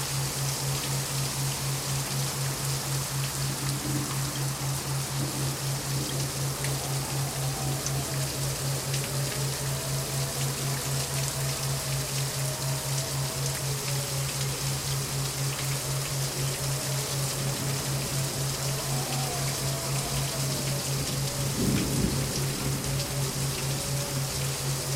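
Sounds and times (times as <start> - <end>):
thundering rainstorm: 0.0 - 24.9
thunder in a rainstorm: 21.5 - 23.1.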